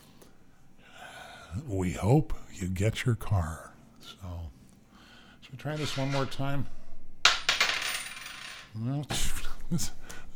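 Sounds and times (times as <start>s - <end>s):
speech: 1.6s - 4.6s, 5.4s - 6.8s, 8.8s - 10.0s
coin being tossed, clinking and spinning: 5.7s - 6.6s, 7.2s - 8.7s.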